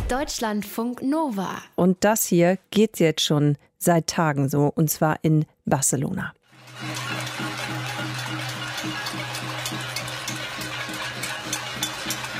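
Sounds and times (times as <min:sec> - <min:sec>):
speech: 0:00.1 - 0:07.1
metal pots banged with spoons in protest: 0:06.6 - 0:12.3.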